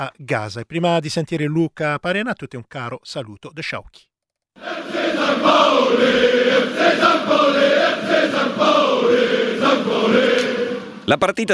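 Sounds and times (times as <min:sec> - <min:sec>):
speech: 0:00.0 - 0:11.5
football fans chanting their team's name: 0:04.6 - 0:11.1.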